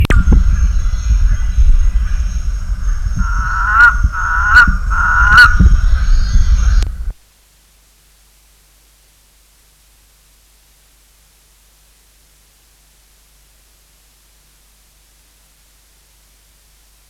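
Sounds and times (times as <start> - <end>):
Hose's toad buzzy pulsed calls: 0.1 - 7.1.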